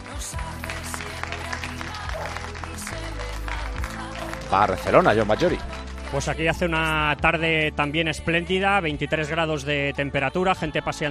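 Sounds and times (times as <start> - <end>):
people applauding from balconies: 0.0 - 7.2
speech: 4.5 - 11.0.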